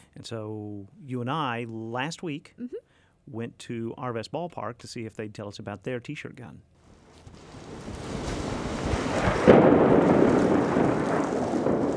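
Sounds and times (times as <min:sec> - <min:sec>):
speech: 0:00.2 - 0:06.7
steady rain at Arvest Ballpark in Springdale: 0:06.8 - 0:11.9
rolling thunder at Arvest Ballpark in Springdale: 0:07.3 - 0:11.9.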